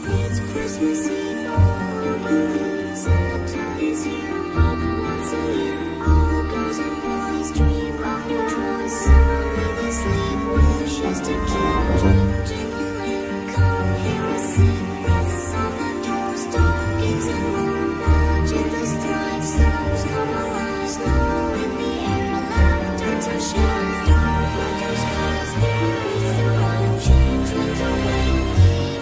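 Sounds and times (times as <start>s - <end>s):
scary Christmas music: 0.0s - 29.0s.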